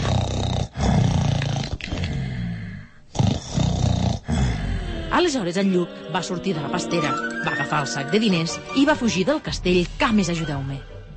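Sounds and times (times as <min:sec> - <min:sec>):
giant's loud deep snoring: 0:00.0 - 0:05.2
speech: 0:05.2 - 0:11.0.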